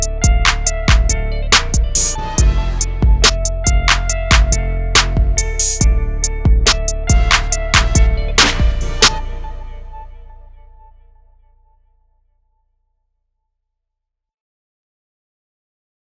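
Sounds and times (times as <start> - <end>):
soul trap beat: 0.0 - 10.8.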